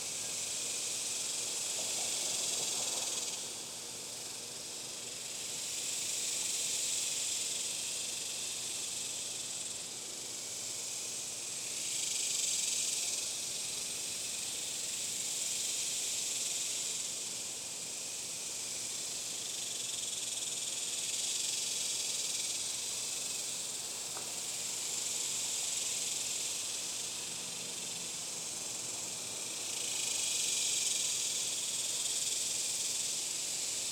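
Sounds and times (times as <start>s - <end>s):
crickets: 0.0s - 33.8s.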